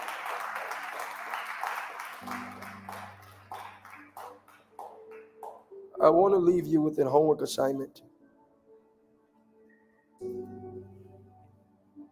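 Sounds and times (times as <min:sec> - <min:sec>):
audience hand clapping: 0:00.0 - 0:05.8
speech: 0:06.0 - 0:08.1.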